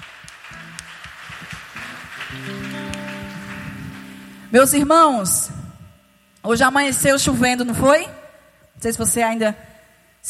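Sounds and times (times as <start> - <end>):
audience clapping hands: 0.0 - 4.8
speech: 2.3 - 3.0, 4.5 - 5.6, 6.4 - 8.2, 8.8 - 10.2.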